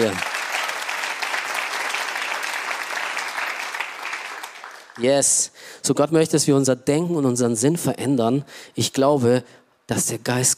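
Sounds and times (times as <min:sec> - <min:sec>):
speech: 0:00.0 - 0:00.3, 0:05.0 - 0:10.5
audience applause: 0:00.0 - 0:05.0.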